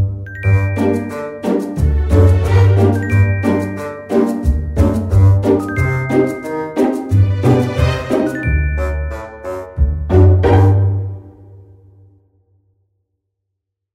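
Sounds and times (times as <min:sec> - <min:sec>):
funny background sound: 0:00.4 - 0:11.4.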